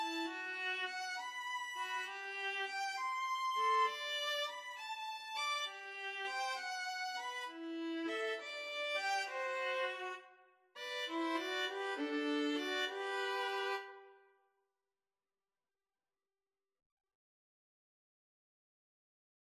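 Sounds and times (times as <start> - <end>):
string trio playing a pastorale: 0.0 - 10.2, 10.8 - 13.8.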